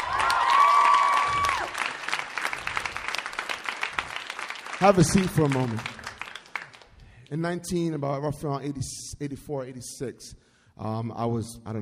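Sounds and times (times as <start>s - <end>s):
crowd clapping: 0.0s - 7.4s
speech: 4.8s - 5.9s, 7.3s - 11.7s.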